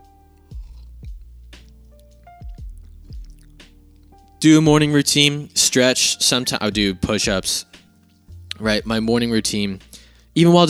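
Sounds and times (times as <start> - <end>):
person sipping coffee from a cup: 0.3 - 4.3
speech: 4.4 - 7.7, 8.6 - 10.6.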